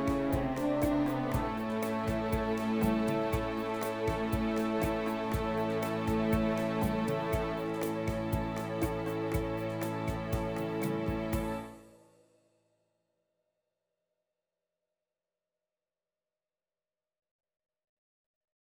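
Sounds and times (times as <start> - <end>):
rumba music: 0.0 - 11.8.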